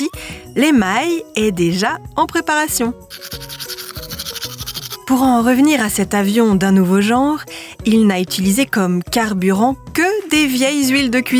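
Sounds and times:
speech: 0.1 - 3.5, 5.1 - 11.3
toothbrush scrubbing teeth: 3.1 - 5.5.

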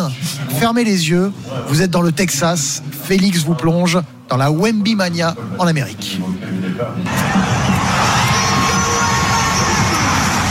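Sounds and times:
speech: 0.0 - 7.6
San Antonio Spurs basketball fans cheering at an open practice in San Antonio: 7.1 - 10.4.

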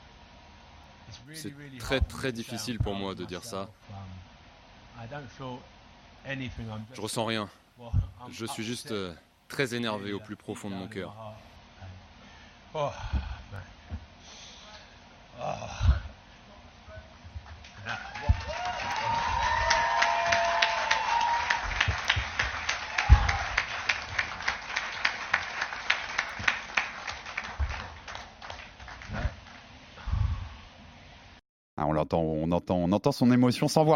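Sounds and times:
speech: 1.1 - 4.3, 5.0 - 11.5, 12.7 - 13.7, 15.4 - 16.0, 31.8 - 33.9
journalists and press conference audience applauding: 17.6 - 29.7.

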